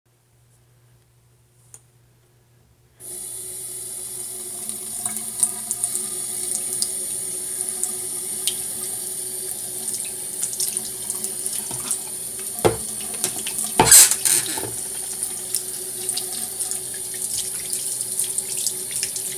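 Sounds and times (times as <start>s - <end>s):
washing hands in a bathroom: 5.0s - 19.3s.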